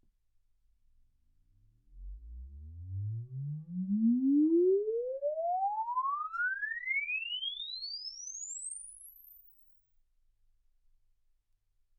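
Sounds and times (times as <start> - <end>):
exponential sine sweep from 10 Hz to 24 kHz: 2.0 - 9.6.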